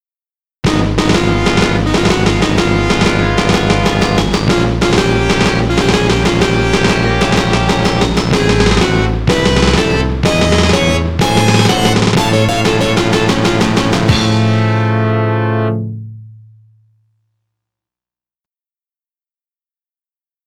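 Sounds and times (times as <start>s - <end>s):
game over jingle arrangement: 0.7s - 15.8s.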